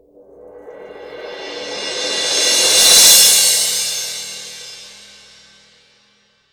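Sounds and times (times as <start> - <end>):
mallet on cymbal: 0.7 - 5.7.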